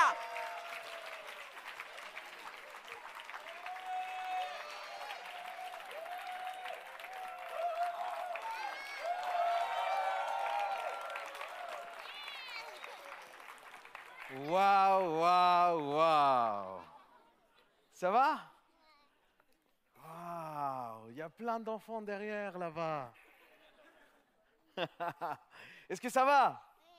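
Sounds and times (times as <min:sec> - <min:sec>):
excited voices and cheers: 0:00.0 - 0:01.6, 0:03.4 - 0:13.2
audience applause: 0:00.0 - 0:16.1
speech: 0:14.4 - 0:16.8, 0:18.0 - 0:18.5, 0:21.2 - 0:23.2, 0:24.8 - 0:26.7
laughter: 0:16.5 - 0:17.7, 0:23.2 - 0:25.6.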